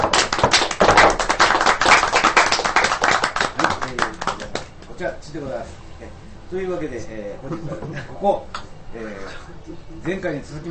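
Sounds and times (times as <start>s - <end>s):
small group applause: 0.0s - 4.8s
speech: 5.0s - 10.6s.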